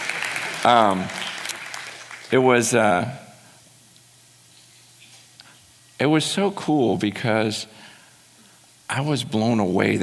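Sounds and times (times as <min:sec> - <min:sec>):
audience applause: 0:00.0 - 0:02.4
speech: 0:00.6 - 0:01.2, 0:02.3 - 0:03.3, 0:06.0 - 0:07.8, 0:08.9 - 0:10.0.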